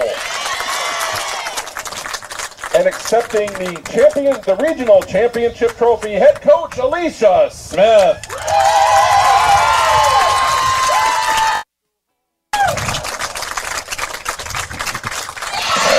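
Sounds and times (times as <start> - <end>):
crowd applauding and cheering: 0.0 - 5.4, 7.8 - 11.6, 12.6 - 15.9
speech: 2.8 - 8.8.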